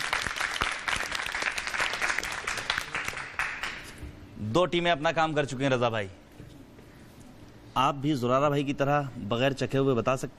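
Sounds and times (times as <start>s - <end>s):
audience applause: 0.0s - 3.9s
speech: 4.5s - 6.2s, 7.8s - 10.3s.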